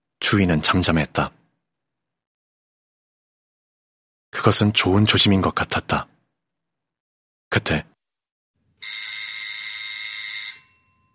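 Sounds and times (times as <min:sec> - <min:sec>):
speech: 0:00.3 - 0:01.4, 0:04.4 - 0:06.1, 0:07.5 - 0:07.9
doorbell ringing: 0:08.8 - 0:11.1.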